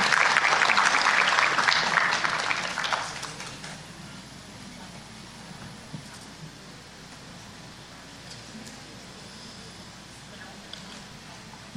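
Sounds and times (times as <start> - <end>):
audience applause: 0.0 - 3.8.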